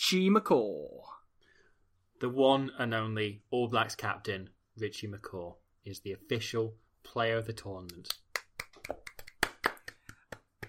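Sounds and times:
speech: 0.1s - 1.2s, 2.2s - 8.2s, 8.8s - 9.1s
single person applauding: 8.4s - 10.6s.

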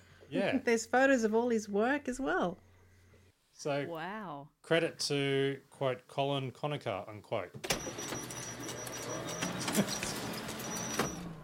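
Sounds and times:
speech: 0.3s - 2.7s, 3.6s - 8.1s, 9.8s - 10.1s
squeaky photocopier running: 7.6s - 11.4s.

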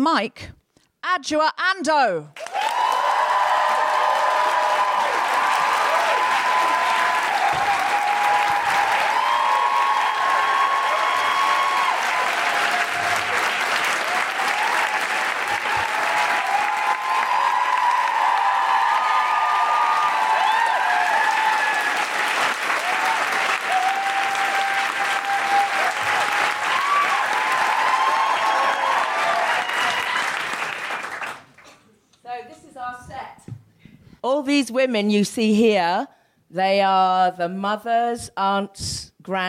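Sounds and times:
speech: 0.0s - 2.5s, 34.6s - 39.4s
whoops and cheers: 2.4s - 30.6s
live stage show audience clapping: 2.4s - 31.8s.

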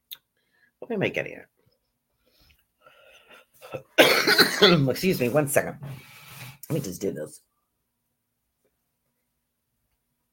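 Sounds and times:
speech: 0.9s - 1.6s, 3.7s - 6.1s, 6.7s - 7.5s
choking person coughing harshly: 3.8s - 4.9s.

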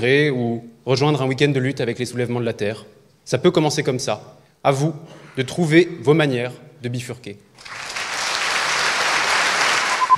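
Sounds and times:
speech: 0.0s - 7.8s
audience applause: 7.6s - 10.1s.

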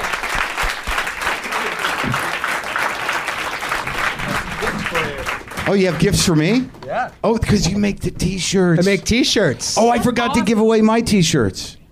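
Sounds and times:
audience applause welcoming a comedian to the stage: 0.0s - 6.4s
speech: 5.7s - 11.8s.

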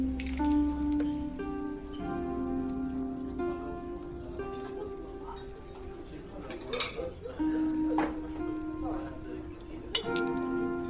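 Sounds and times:
bright chiming notes: 0.0s - 6.2s
soft sustained tones: 0.0s - 10.8s
faint murmuring voices: 3.0s - 10.8s.

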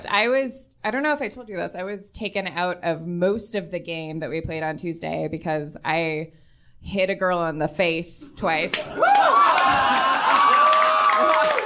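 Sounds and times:
speech: 0.0s - 10.4s
group cheering with shouts and whoops: 8.7s - 11.6s.

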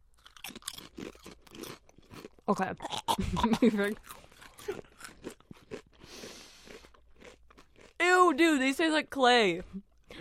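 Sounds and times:
crunching potato chips while eating: 0.1s - 3.2s, 3.8s - 8.0s
speech: 2.5s - 4.9s, 8.4s - 9.8s.

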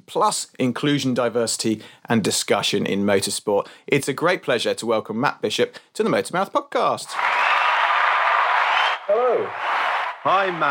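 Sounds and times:
speech: 0.1s - 7.5s, 9.1s - 10.6s
applause: 7.1s - 10.6s.

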